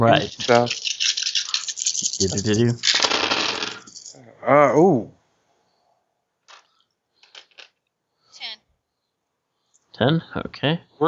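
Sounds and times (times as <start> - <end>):
speech: 0.0 - 1.0, 2.2 - 3.0, 4.4 - 5.2, 10.0 - 11.0
dice rolling: 0.0 - 4.2, 6.5 - 7.8.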